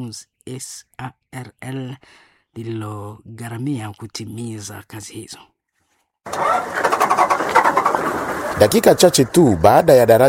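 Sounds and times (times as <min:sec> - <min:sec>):
speech: 0:00.0 - 0:05.5, 0:06.2 - 0:10.2
engine of a truck loaded with food crossing a new bridge: 0:06.3 - 0:10.2.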